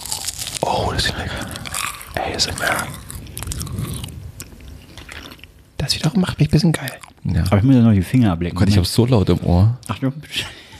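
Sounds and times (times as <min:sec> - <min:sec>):
biting into and chewing a sweet snack: 0:00.0 - 0:05.6, 0:06.6 - 0:07.6
speech: 0:02.3 - 0:03.1, 0:05.9 - 0:10.6.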